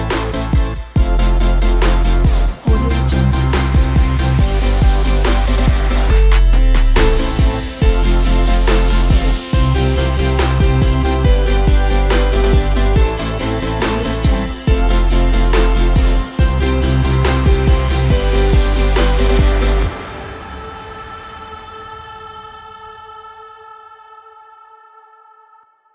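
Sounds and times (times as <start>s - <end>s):
future bass music: 0.0s - 20.0s.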